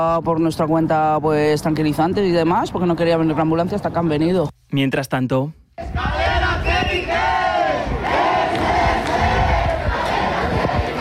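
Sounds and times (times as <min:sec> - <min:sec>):
speech: 0:00.0 - 0:06.2
crowd of protesters chanting and shouting: 0:05.8 - 0:10.9.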